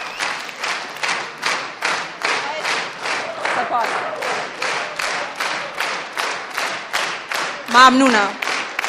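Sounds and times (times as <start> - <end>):
audience clapping in a steady rhythmic beat: 0.0 - 8.8
faint crowd murmur: 0.4 - 8.4
speech: 3.6 - 4.4, 7.7 - 8.4.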